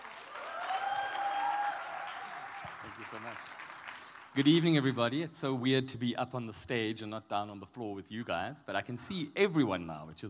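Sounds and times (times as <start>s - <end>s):
audience cheering and clapping: 0.0s - 4.6s
speech: 3.1s - 3.7s, 4.4s - 10.2s.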